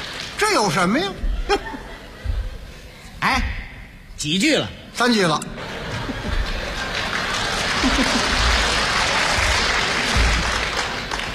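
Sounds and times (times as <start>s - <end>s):
audience applause: 0.0s - 1.0s, 5.6s - 11.3s
speech: 0.4s - 1.8s, 3.2s - 3.5s, 4.2s - 5.6s
laughter: 1.2s - 3.2s, 5.4s - 11.1s.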